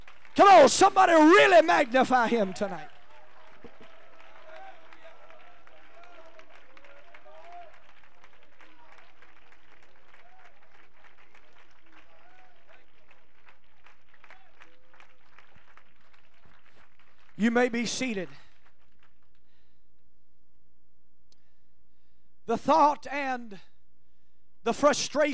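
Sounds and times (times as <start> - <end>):
audience clapping hands: 0.0 - 19.8
speech: 0.4 - 2.9, 17.4 - 18.4, 22.5 - 23.7, 24.6 - 25.3.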